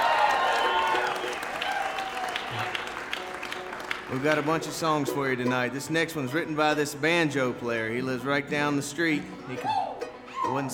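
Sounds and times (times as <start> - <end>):
audience applause: 0.0 - 5.0
speech: 4.1 - 9.9, 10.5 - 10.7.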